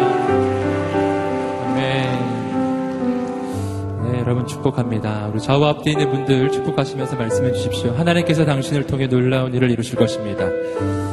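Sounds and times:
audience applause: 0.0s - 3.9s
speech: 4.5s - 11.1s.

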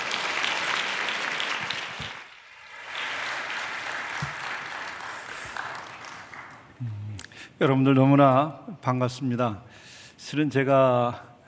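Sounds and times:
audience applause: 0.0s - 6.8s
speech: 7.6s - 11.3s.

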